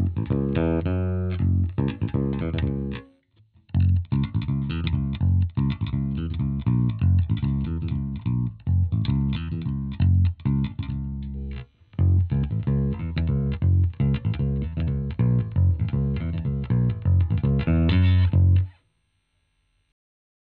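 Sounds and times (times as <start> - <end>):
Fender Roadworn bass guitar played with fingers: 0.0 - 18.8.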